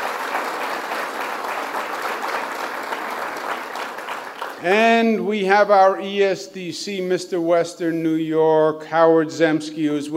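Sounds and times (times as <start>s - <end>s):
audience applause: 0.0s - 4.8s
speech: 4.6s - 10.1s.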